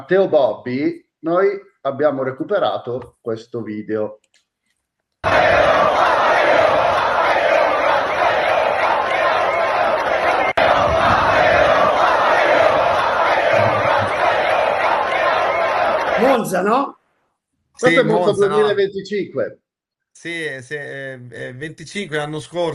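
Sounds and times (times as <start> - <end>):
speech: 0.0 - 4.2, 5.2 - 6.0, 16.2 - 17.0, 17.8 - 19.6, 20.2 - 22.7
crowd at Monza cheering after the race finish: 5.2 - 16.8, 17.8 - 18.7.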